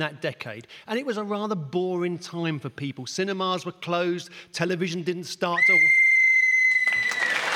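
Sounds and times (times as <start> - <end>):
speech: 0.0 - 6.0
referee's whistle blown: 5.6 - 7.4.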